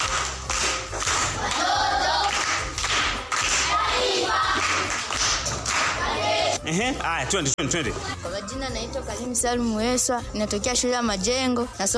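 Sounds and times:
schoolchildren and adults clapping at a school event: 0.0 - 6.2
speech: 6.7 - 11.9.

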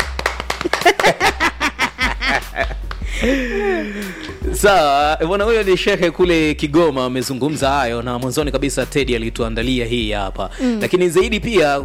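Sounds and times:
hands clapping: 0.0 - 3.1, 4.1 - 4.4
people laughing: 0.6 - 5.1
speech: 3.2 - 11.8.

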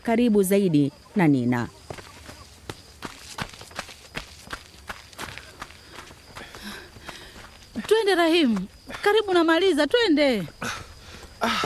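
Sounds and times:
speech: 0.0 - 1.8, 8.1 - 10.7
footsteps of two people running in a training session: 1.7 - 9.7, 10.6 - 11.6.

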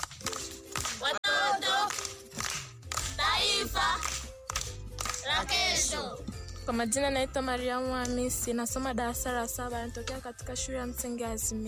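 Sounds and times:
schoolchildren clapping rhythmically at a primary school geography quiz: 0.0 - 6.0
speech: 5.4 - 11.6.

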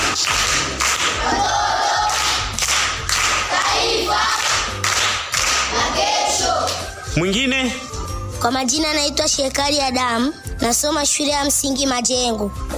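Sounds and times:
school audience clapping for a pupil reciting proverbs: 0.0 - 6.9
speech: 7.2 - 7.8, 8.4 - 12.7.

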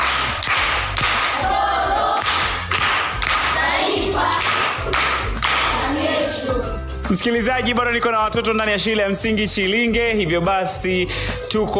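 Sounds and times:
children clapping in a primary school classroom: 0.0 - 6.3
speech: 7.1 - 11.7.

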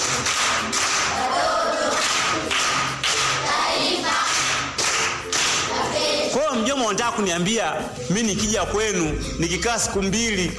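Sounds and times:
primary school pupils patterned group clapping: 0.0 - 6.6
speech: 6.9 - 10.5.

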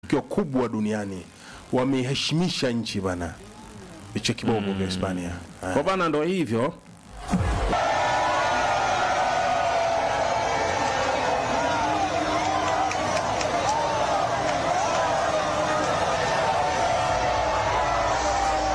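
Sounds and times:
speech: 0.1 - 3.5, 4.1 - 7.4
crowd cheering in Spain after a World Cup victory: 7.2 - 18.7
whoops and wavering shouts: 7.7 - 18.7.

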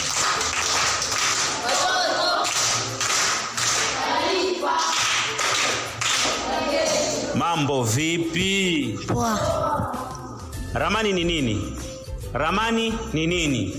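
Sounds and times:
primary-school pupils clapping for a classmate in a classroom: 0.0 - 7.3
speech: 7.6 - 10.0, 10.7 - 13.7.

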